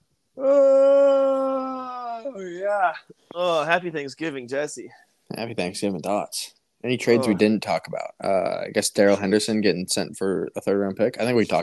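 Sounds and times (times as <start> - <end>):
person yawning: 0.4 - 3.6
speech: 2.4 - 11.6.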